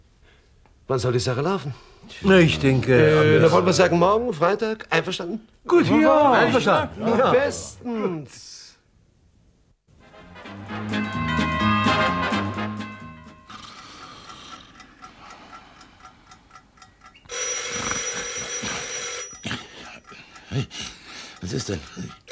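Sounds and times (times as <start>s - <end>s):
speech: 0.9s - 8.6s, 21.5s - 22.2s
clock-like chiming tones: 11.0s - 15.0s, 16.8s - 20.5s, 21.4s - 22.3s
telephone bell ringing: 17.3s - 19.7s.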